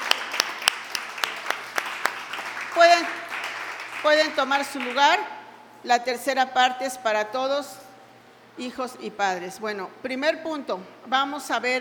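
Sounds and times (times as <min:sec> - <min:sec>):
audience applause: 0:00.0 - 0:05.0
speech: 0:04.0 - 0:07.8, 0:08.6 - 0:11.7.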